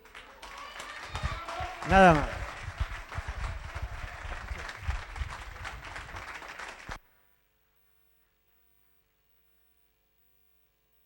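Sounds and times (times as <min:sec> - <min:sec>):
applause: 0:00.0 - 0:07.0
speech: 0:01.9 - 0:02.4.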